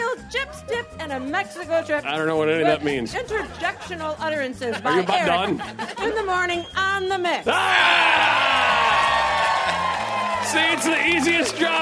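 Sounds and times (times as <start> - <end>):
speech: 1.0 - 8.6, 10.5 - 11.8
laughter: 2.4 - 6.4
crowd cheering and applause: 7.5 - 11.8.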